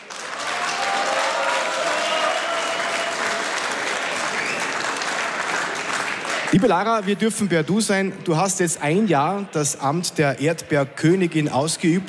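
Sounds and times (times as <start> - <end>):
audience applause: 0.0 - 6.8
speech: 6.5 - 12.0.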